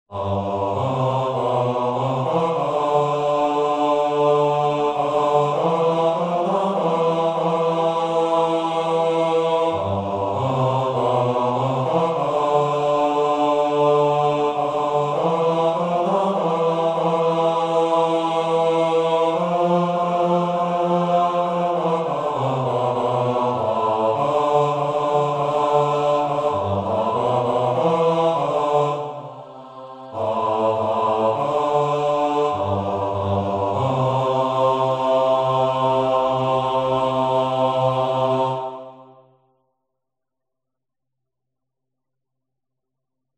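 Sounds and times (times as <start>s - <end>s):
bass: 0.1s - 28.8s, 30.2s - 38.6s.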